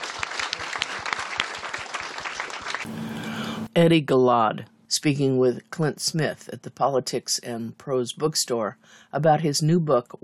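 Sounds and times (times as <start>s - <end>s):
audience applause: 0.0s - 3.6s
speech: 3.8s - 10.2s.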